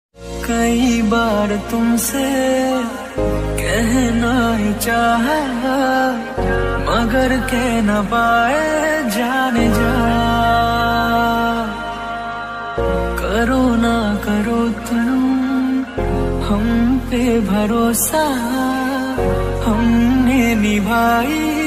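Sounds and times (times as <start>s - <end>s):
Hindi love song ringtone: 0.3s - 21.6s.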